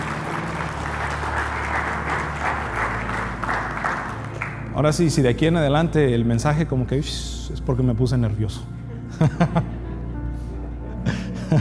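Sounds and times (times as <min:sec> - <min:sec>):
audience applause: 0:00.0 - 0:05.0
speech: 0:04.8 - 0:09.8
laughter: 0:09.1 - 0:10.0, 0:11.0 - 0:11.5.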